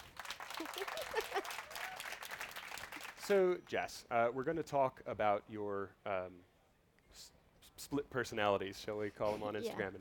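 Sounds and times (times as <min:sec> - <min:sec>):
audience applause: 0:00.0 - 0:03.3
speech: 0:03.3 - 0:06.5, 0:07.1 - 0:09.9.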